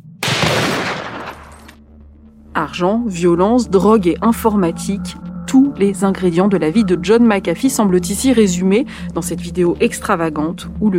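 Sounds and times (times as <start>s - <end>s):
gunshots fired point-blank at a computer: 0.2s - 1.7s
speech: 2.6s - 10.9s.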